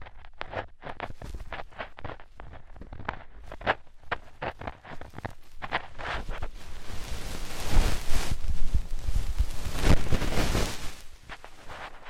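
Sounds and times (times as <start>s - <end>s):
deep ear cleaning scratchy crackles and rustling: 0.2s - 12.0s.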